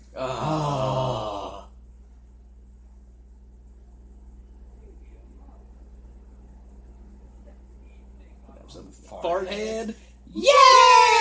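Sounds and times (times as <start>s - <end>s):
speech: 9.0s - 10.8s
Halo 3 Grunt birthday party cheer effect: 10.4s - 11.1s.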